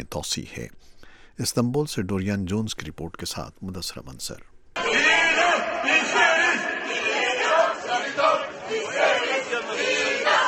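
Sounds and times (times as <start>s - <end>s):
speech: 0.0s - 4.5s
protesters in Istanbul chanting for the death penalty: 4.8s - 10.4s.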